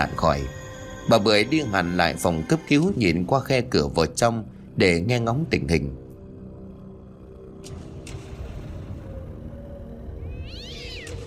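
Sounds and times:
speech: 0.0 - 6.0
two cats meowing and yowling in a yard: 10.3 - 11.2.

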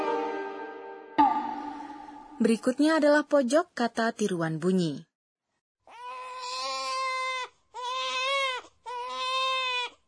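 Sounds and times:
speech: 2.4 - 5.1
baby crying loudly: 5.9 - 10.0.

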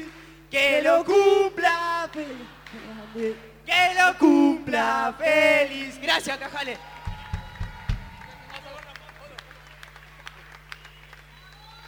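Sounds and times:
speech: 0.5 - 6.9
audience applause: 6.8 - 11.8.

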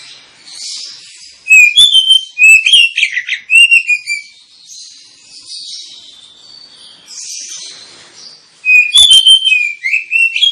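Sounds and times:
Oriental magpie-robin song: 0.0 - 10.5.

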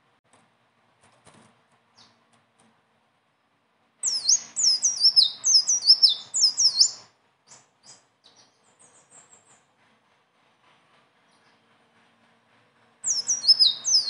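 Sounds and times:
leafbird singing: 1.9 - 2.2, 4.0 - 9.7, 13.0 - 14.0.

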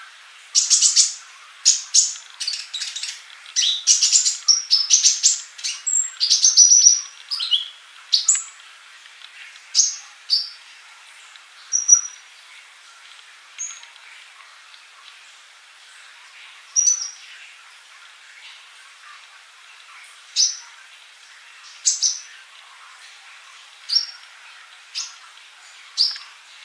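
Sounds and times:
soft hissy background: 0.0 - 26.6
bird singing: 0.5 - 8.6, 11.7 - 12.2, 16.7 - 17.4, 21.6 - 23.0, 23.8 - 26.4.

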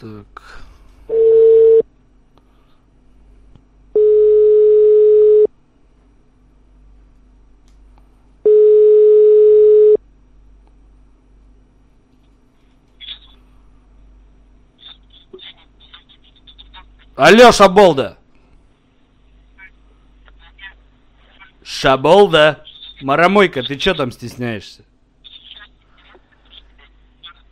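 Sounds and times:
speech: 0.0 - 1.2, 17.2 - 18.2, 21.8 - 24.9
telephone ringback tone on an outgoing call: 1.1 - 1.8, 4.0 - 5.5, 8.5 - 10.0.

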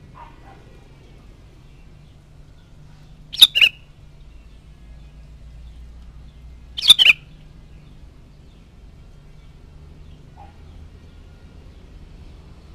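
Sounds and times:
sooty-headed bulbul chattering: 3.3 - 3.9, 6.8 - 7.3.

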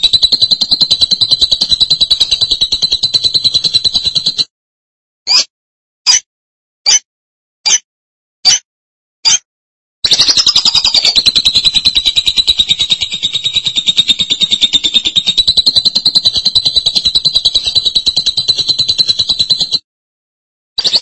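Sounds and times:
lovebird squeaks and shrill trill: 0.0 - 4.4, 5.3 - 5.5, 6.1 - 7.0, 7.6 - 7.8, 8.4 - 8.6, 9.2 - 9.4, 10.0 - 19.8, 20.8 - 21.0.

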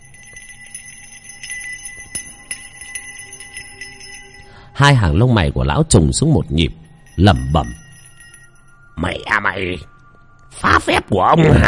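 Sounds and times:
handbell being shaken and ringing: 0.0 - 4.7, 6.8 - 9.0
speech: 4.8 - 7.8, 9.0 - 9.9, 10.7 - 11.6.

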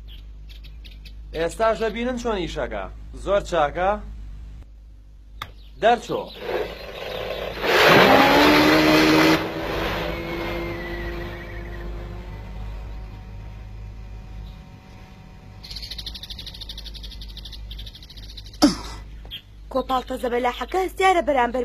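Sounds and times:
speech: 1.3 - 4.1, 5.8 - 6.8, 19.8 - 21.6
small motor of a remote-controlled fishing boat: 6.4 - 18.5.

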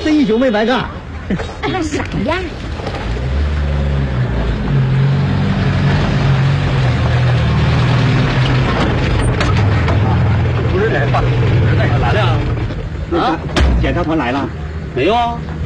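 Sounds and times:
jeep engine arriving: 0.0 - 15.6
speech: 0.1 - 2.9, 13.1 - 15.6.

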